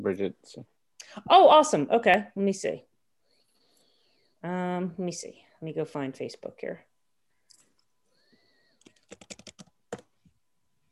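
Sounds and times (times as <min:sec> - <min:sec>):
speech: 0:00.0 - 0:02.9, 0:04.4 - 0:06.9
typing on a computer keyboard while logging into Facebook: 0:08.8 - 0:10.1.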